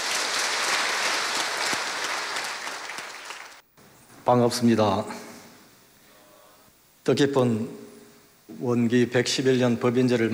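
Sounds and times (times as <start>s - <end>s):
audience applause: 0.0s - 3.6s
speech: 4.3s - 5.2s, 7.1s - 7.9s, 8.5s - 10.3s.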